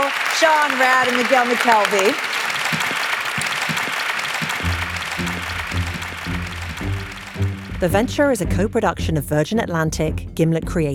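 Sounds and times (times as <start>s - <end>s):
audience round of applause: 0.0s - 8.4s
speech: 0.4s - 2.9s, 7.8s - 10.9s.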